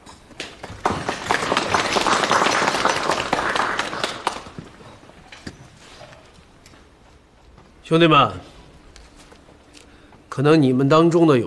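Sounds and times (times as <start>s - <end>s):
audience applause: 0.4s - 5.1s
speech: 7.9s - 8.5s, 10.4s - 11.4s.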